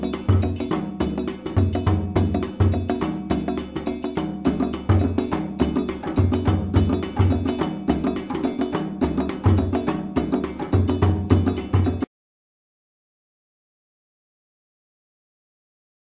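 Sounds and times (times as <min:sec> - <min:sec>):
djembe playing a kuku build-up: 0:00.0 - 0:12.1.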